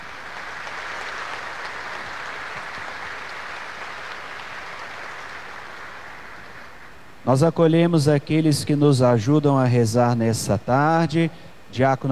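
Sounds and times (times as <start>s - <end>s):
audience applause: 0.0s - 7.2s
speech: 7.2s - 12.1s.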